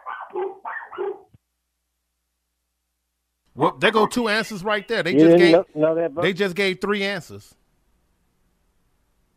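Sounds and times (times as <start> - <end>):
dog barking: 0.0 - 1.3
speech: 3.6 - 7.6.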